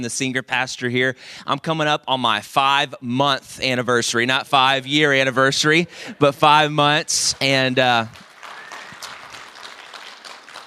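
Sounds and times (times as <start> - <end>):
speech: 0.0 - 8.3
church congregation applause: 7.1 - 10.6.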